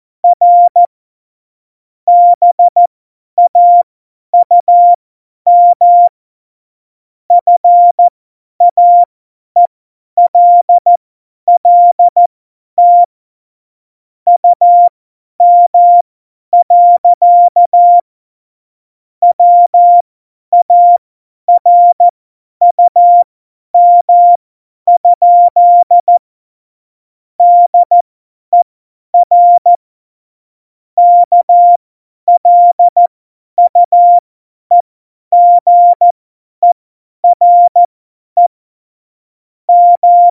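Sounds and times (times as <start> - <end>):
CW Morse code at tempo 70: 0.2 - 0.9, 2.1 - 2.8, 3.4 - 3.8, 4.4 - 6.1, 7.4 - 8.1, 8.7 - 12.2, 12.8 - 13.1, 14.3 - 16.0, 16.6 - 18.0, 19.3 - 26.2, 27.4 - 28.0, 29.2 - 29.8, 31.0 - 38.5, 39.7 - 40.2.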